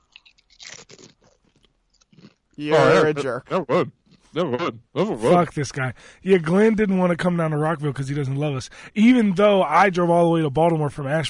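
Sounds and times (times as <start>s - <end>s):
someone crunching kettle chips: 0.0s - 2.5s
speech: 2.6s - 11.2s.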